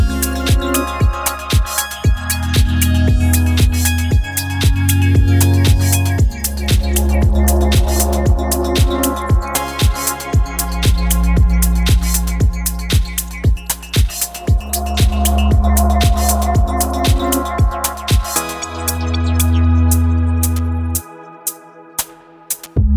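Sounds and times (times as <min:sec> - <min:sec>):
ambient soundscape: 0:00.0 - 0:22.8.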